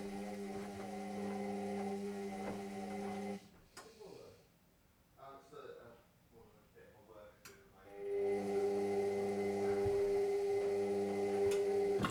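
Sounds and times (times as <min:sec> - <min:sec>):
washing machine: 0:00.0 - 0:03.4, 0:07.9 - 0:12.0.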